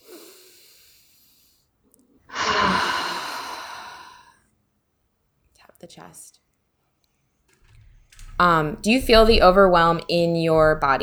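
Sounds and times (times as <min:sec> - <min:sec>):
deep breath: 0:00.0 - 0:01.6, 0:02.3 - 0:04.4
speech: 0:05.8 - 0:06.4, 0:08.4 - 0:11.0.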